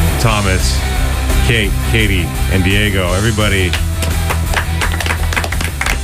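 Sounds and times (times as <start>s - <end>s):
speech: 0.2s - 4.2s
several hands clapping: 3.5s - 6.0s.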